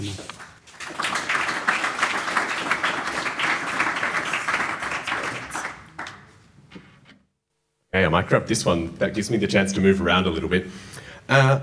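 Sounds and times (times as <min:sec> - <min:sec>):
crowd applauding: 0:00.4 - 0:06.4
speech: 0:08.0 - 0:11.6.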